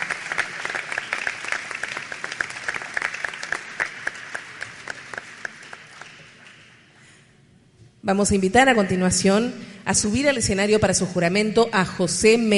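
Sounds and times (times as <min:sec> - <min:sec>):
audience applause: 0:00.0 - 0:06.8
speech: 0:08.0 - 0:12.5.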